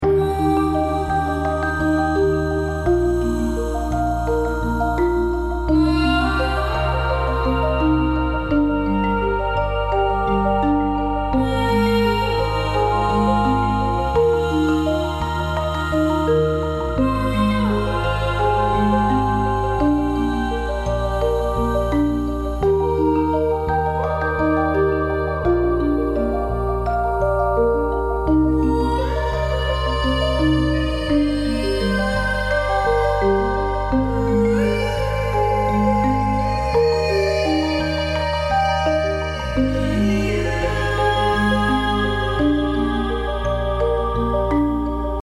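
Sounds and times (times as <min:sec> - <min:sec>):
healing melody: 0:00.0 - 0:45.2.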